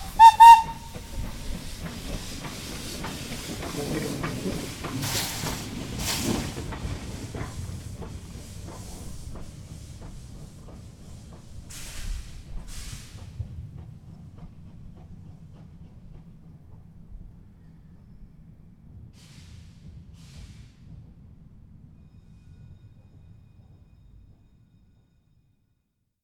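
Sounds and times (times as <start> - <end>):
locomotive: 0.0 - 16.4.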